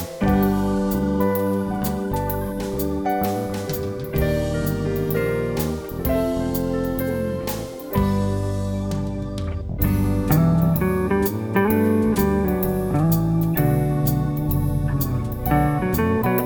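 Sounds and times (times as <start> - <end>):
jazz music bed: 0.0 - 16.4.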